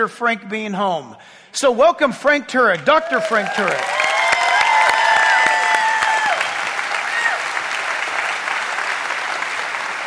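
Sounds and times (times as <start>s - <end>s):
speech: 0.0s - 4.0s
audience applause in a standing ovation for guest speaker Dr. Frank Turek: 2.8s - 10.0s.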